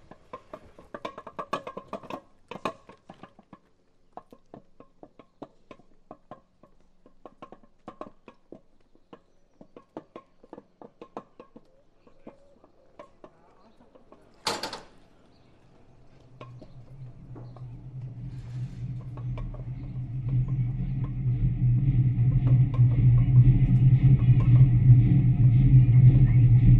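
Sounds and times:
Watercress Line steam train: 14.2s - 26.7s.

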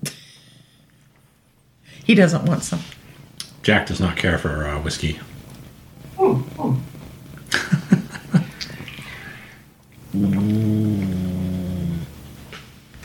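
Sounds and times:
speech: 2.1s - 3.0s, 3.6s - 5.3s
laughter: 7.5s - 9.0s
dog growling: 8.7s - 12.3s.

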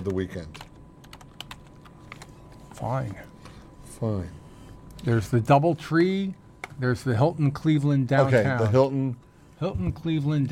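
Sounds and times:
speech: 0.0s - 0.7s, 2.8s - 3.3s, 4.0s - 4.4s, 5.0s - 10.5s
typing on a computer keyboard: 0.0s - 2.3s.

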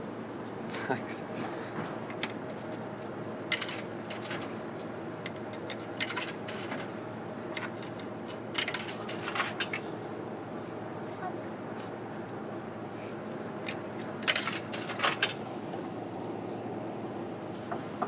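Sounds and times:
vending machine: 0.1s - 18.0s.

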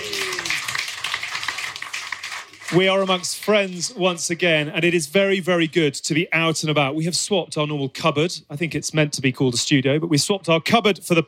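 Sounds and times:
pub audience cheering and clapping at a live rugby talk-show recording: 0.0s - 4.2s
speech: 2.7s - 11.2s.

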